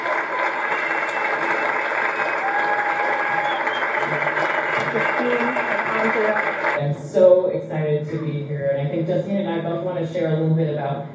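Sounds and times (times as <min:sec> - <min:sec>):
audience clapping: 0:00.0 - 0:06.8
speech: 0:05.2 - 0:11.1.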